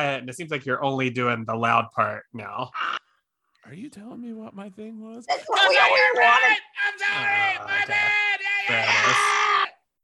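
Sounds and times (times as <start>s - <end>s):
speech: 0.0s - 3.0s, 3.6s - 9.6s
audience member whooping and yelling: 5.6s - 9.8s.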